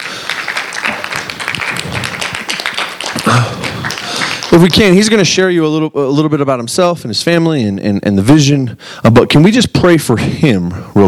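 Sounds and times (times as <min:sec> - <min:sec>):
audience round of applause: 0:00.0 - 0:05.0
speech: 0:04.6 - 0:11.0.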